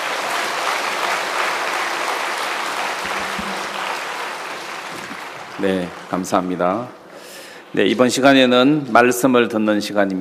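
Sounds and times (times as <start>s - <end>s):
crowd applause: 0.0s - 6.9s
speech: 5.6s - 7.0s, 7.7s - 10.1s.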